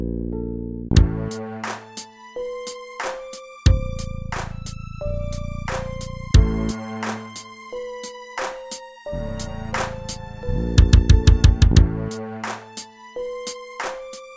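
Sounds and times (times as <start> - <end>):
MIDI ditty: 0.9 - 2.9, 5.3 - 13.7.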